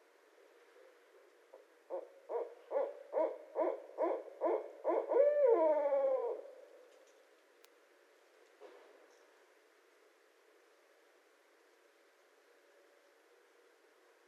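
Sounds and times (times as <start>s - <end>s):
barred owl hooting: 1.9s - 6.7s.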